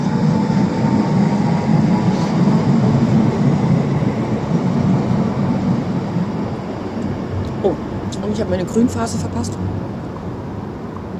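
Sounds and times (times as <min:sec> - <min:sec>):
regional train line 11E to Waren pulling away from the platform: 0:00.0 - 0:08.2
speech: 0:08.4 - 0:09.9.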